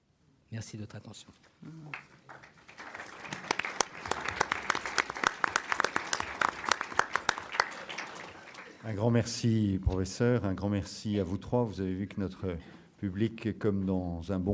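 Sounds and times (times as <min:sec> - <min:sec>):
speech: 0:00.5 - 0:02.5, 0:08.8 - 0:14.5
audience applause after a lecture: 0:01.8 - 0:08.8.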